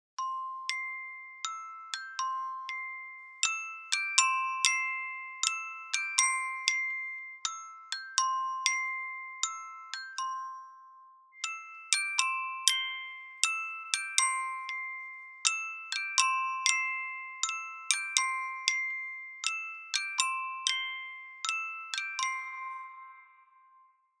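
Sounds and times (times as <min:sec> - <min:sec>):
bells ringing: 0:00.2 - 0:24.0.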